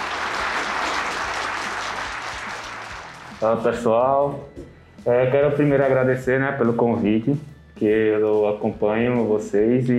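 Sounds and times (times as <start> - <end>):
applause: 0.0 - 3.6
speech: 3.4 - 9.9.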